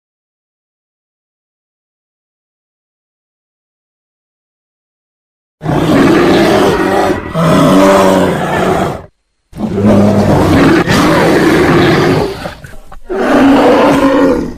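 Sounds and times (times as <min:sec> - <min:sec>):
brown bear roaring: 0:05.6 - 0:14.5.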